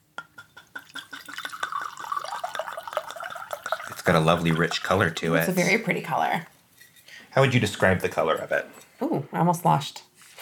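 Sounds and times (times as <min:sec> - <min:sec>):
bourbon poured into a glass: 0:00.4 - 0:05.4
speech: 0:04.1 - 0:06.5, 0:07.4 - 0:10.1.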